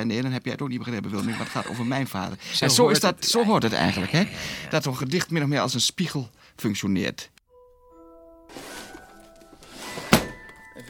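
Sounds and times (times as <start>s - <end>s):
speech: 0.0s - 7.3s
song cabinet drawer sliding open: 8.5s - 10.7s.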